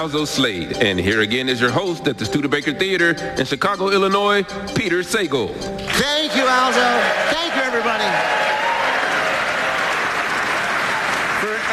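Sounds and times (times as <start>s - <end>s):
speech: 0.0s - 8.5s
theater audience clapping: 5.8s - 11.7s.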